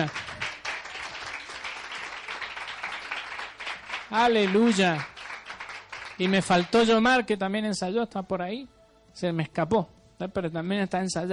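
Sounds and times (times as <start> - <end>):
speech: 0.0 - 0.2, 4.1 - 5.1, 6.2 - 11.3
audience applauding: 0.0 - 7.0.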